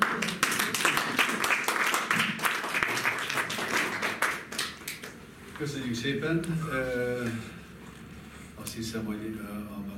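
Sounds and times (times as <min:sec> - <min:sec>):
audience applause: 0:00.0 - 0:05.1
speech: 0:05.6 - 0:07.6, 0:08.8 - 0:09.9.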